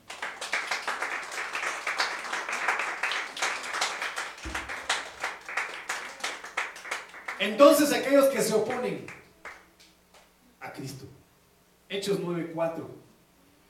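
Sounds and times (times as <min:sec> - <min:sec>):
crowd clapping: 0:00.0 - 0:09.7
low thump: 0:04.4 - 0:04.9
speech: 0:07.4 - 0:09.2, 0:11.9 - 0:13.1.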